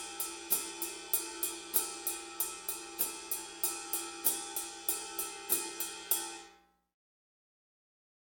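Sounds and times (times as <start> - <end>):
drums: 0.0 - 6.5.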